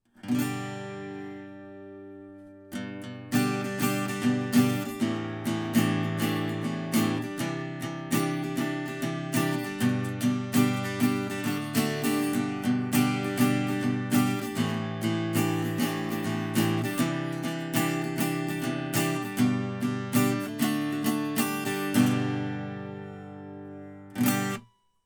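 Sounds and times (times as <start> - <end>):
guitar note at the third fret: 0.3 - 24.8.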